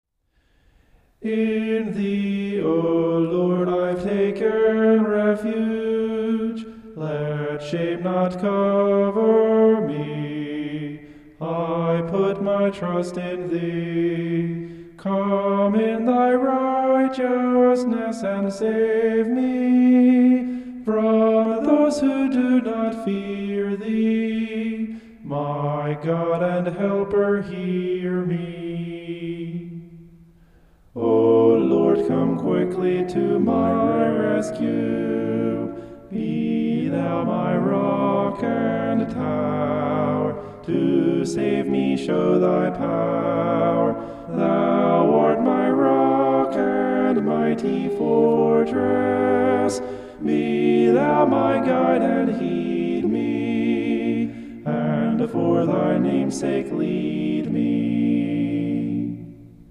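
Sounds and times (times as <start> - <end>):
homophonic vocals: 1.1 - 59.7.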